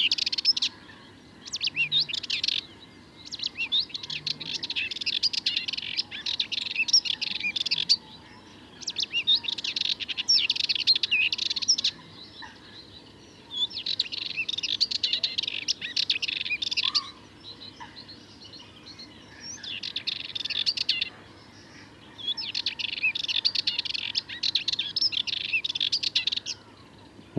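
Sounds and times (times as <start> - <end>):
Sardinian warbler chattering song: 0.0 - 27.3.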